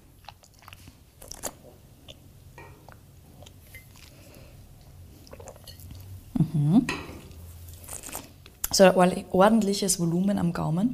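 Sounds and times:
sip and slurp of wine at a wine tasting: 0.0 - 6.2
wine glass clinking: 5.6 - 5.9
speech: 6.4 - 7.1, 8.8 - 10.9.

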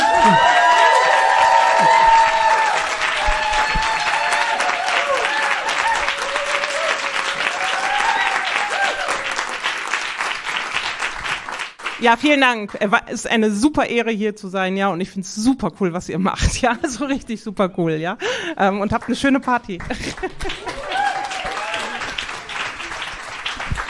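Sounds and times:
cheers and whoops: 0.0 - 9.6, 20.5 - 22.6
audience applause: 0.0 - 12.0, 19.8 - 23.8
speech: 12.0 - 20.8.

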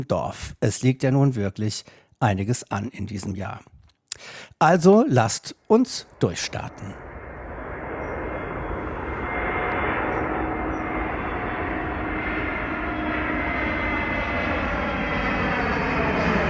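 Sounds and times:
speech: 0.0 - 7.0
airplane landing, recorded on phone: 4.2 - 16.4.

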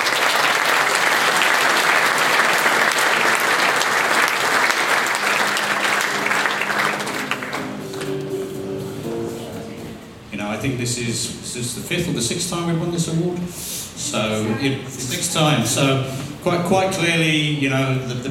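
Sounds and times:
audience applause: 0.0 - 8.3
speech: 10.8 - 18.2.

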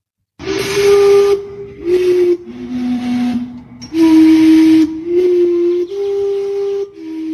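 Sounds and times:
historic steam clock whistling: 0.4 - 7.3.

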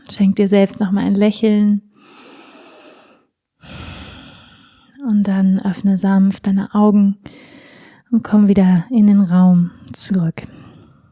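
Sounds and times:
speech: 0.1 - 1.9, 5.0 - 10.6
deep breath in and out during a guided relaxation exercise: 2.0 - 5.0, 7.3 - 8.1, 10.5 - 11.1.

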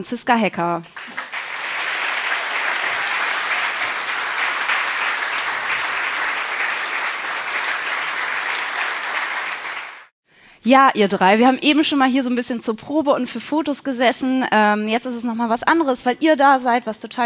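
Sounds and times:
speech: 0.0 - 1.2, 10.6 - 17.2
audience applause: 0.9 - 10.1.

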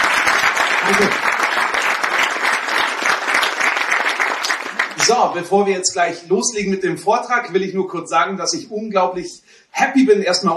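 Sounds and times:
audience applause: 0.0 - 5.4
speech: 0.9 - 1.7, 5.1 - 10.5.

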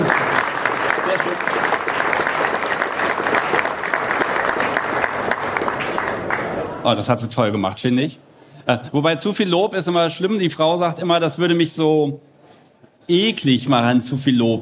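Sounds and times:
audience applause: 0.0 - 6.8
speech: 6.8 - 12.3, 13.1 - 14.5.

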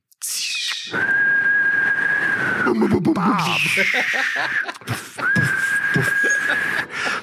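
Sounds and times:
voice imitating a whistling firework: 0.2 - 6.8
laughter: 3.2 - 7.2.

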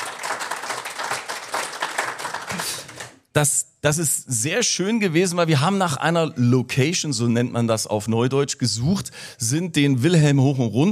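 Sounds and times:
audience applause: 0.0 - 3.2
speech: 3.4 - 10.9.

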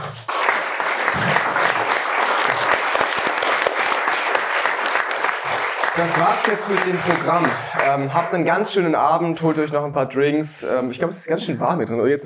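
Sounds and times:
audience applauding: 0.0 - 8.4
speech: 6.0 - 12.2.

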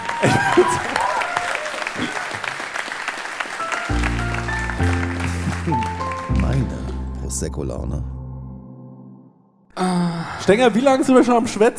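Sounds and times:
audience applause: 0.0 - 7.0
speech: 0.2 - 1.0, 2.0 - 2.3, 7.4 - 8.2, 9.8 - 11.7.

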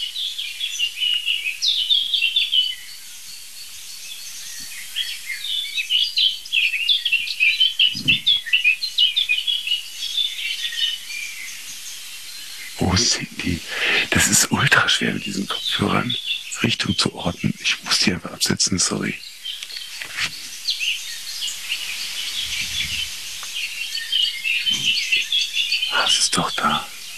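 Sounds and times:
blackbird and song thrush singing: 0.0 - 27.1
speech: 13.0 - 19.3.

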